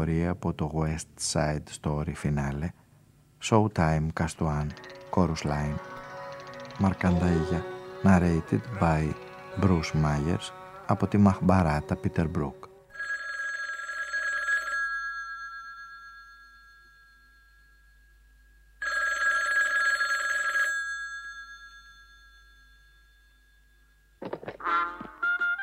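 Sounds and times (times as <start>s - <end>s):
speech: 0.0s - 2.8s, 3.4s - 5.9s, 6.8s - 12.7s
telephone ringing: 4.2s - 9.9s, 12.9s - 17.8s, 18.8s - 23.7s
answering machine warbling chirping electronic tones: 4.6s - 12.5s.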